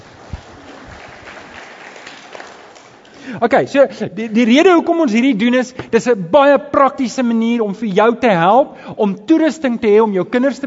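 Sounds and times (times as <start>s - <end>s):
group applauding: 0.0s - 3.4s
speech: 3.3s - 10.6s.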